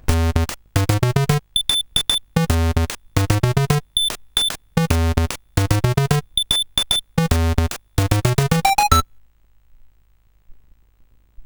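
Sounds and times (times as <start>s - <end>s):
SID chiptune music on a CSG8580R5 chip: 0.0s - 9.0s.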